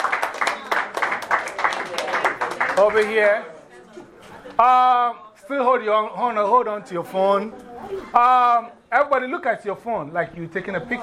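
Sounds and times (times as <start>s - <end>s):
classroom group clapping for a student: 0.0s - 3.4s
speech: 2.8s - 3.5s, 4.6s - 11.0s.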